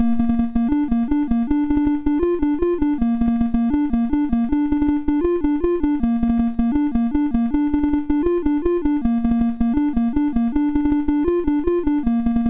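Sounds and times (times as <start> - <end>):
MOS6581R2 SID chip synth: 0.0 - 12.4.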